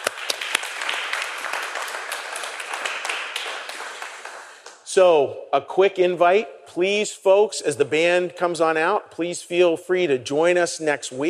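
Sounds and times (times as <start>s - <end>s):
audience applause: 0.0s - 4.7s
speech: 5.0s - 11.2s.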